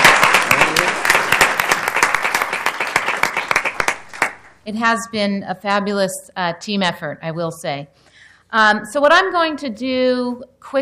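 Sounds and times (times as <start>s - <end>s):
audience round of applause: 0.0s - 4.6s
speech: 4.7s - 10.7s.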